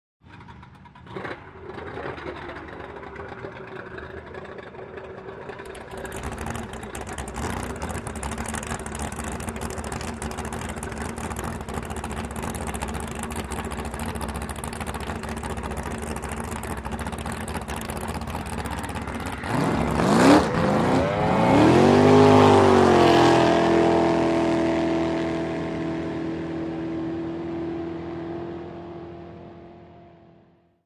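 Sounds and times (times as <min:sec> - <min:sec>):
drag boat engine starting and revving: 0:00.2 - 0:30.6.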